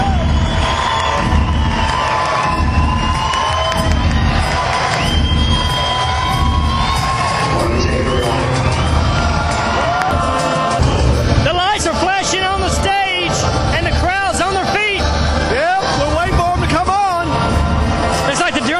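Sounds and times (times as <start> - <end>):
sharp whistles and whoops: 0.0 - 10.1
concert crowd cheering: 0.0 - 18.7.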